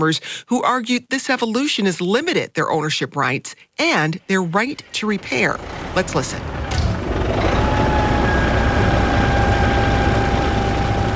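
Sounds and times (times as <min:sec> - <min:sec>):
speech: 0:00.0 - 0:06.6
combine harvester engine running: 0:04.7 - 0:11.1.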